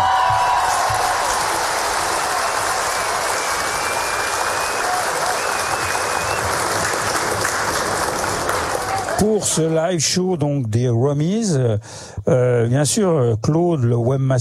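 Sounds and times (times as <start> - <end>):
audience applause: 0.0 - 9.9
speech: 9.2 - 14.4.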